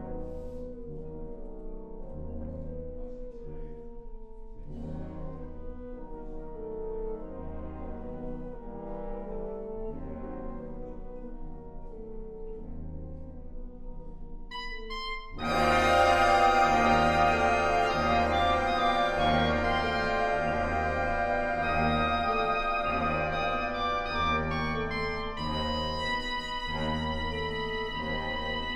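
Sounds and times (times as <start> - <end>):
soprano saxophone: 14.5 - 28.7
fanfare band: 15.4 - 25.5.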